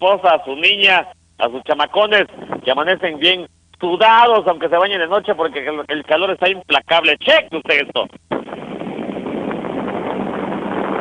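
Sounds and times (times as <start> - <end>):
speech: 0.0 - 8.6
pedestal fan running: 0.0 - 11.0.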